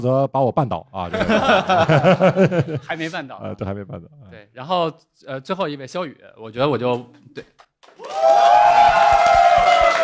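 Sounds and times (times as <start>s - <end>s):
speech: 0.0s - 9.2s
laughter: 1.1s - 3.8s
audience cheering: 7.8s - 10.0s.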